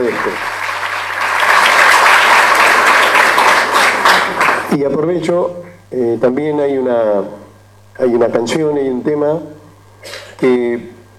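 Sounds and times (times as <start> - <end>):
audience applause for the band director: 0.0 - 4.7
speech: 0.1 - 0.6, 4.8 - 10.9.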